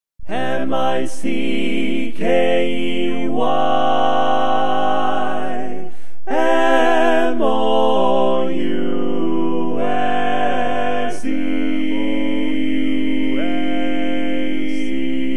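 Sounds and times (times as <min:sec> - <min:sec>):
barbershop tags all parts singing: 0:00.3 - 0:15.2.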